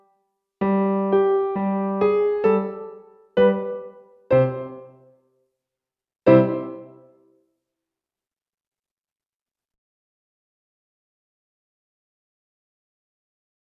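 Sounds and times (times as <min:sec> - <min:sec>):
slow ragtime music: 0:00.6 - 0:05.2, 0:06.3 - 0:07.2.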